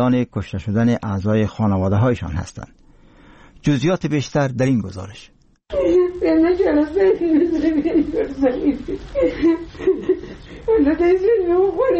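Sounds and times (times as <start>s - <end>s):
speech: 0.0s - 2.8s, 3.6s - 11.9s
grieving mother crying: 5.7s - 11.9s.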